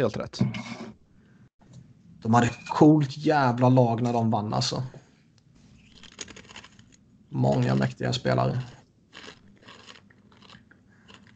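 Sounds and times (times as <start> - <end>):
speech: 0.0 - 0.8, 2.2 - 5.0, 7.3 - 8.8
someone crunching potato chips: 5.8 - 11.3.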